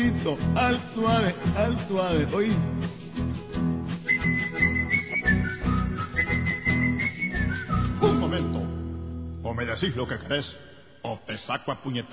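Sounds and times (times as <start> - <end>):
speech: 0.0 - 3.4, 9.6 - 12.1
person whistling: 4.0 - 8.4.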